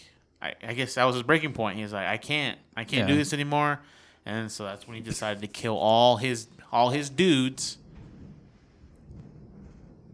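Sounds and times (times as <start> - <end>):
speech: 0.4 - 7.8
thunder rumbling: 7.2 - 10.1.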